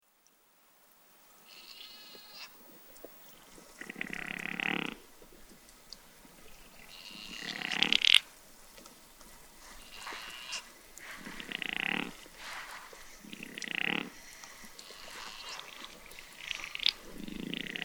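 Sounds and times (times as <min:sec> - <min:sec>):
chamois bleating: 0:01.4 - 0:05.3, 0:06.3 - 0:08.3, 0:09.6 - 0:12.3, 0:13.0 - 0:17.8.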